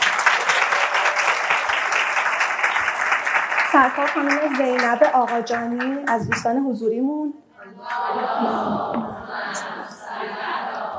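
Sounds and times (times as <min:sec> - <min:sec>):
audience applause: 0:00.0 - 0:06.1
speech: 0:03.8 - 0:09.9.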